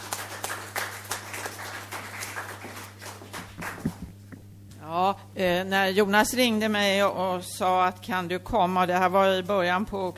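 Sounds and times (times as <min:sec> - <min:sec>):
applause: 0:00.0 - 0:04.2
speech: 0:04.9 - 0:10.1.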